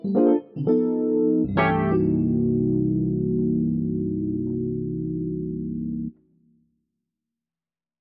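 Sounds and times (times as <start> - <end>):
sweet Rhodes electric piano with flanger: 0.0 - 6.2.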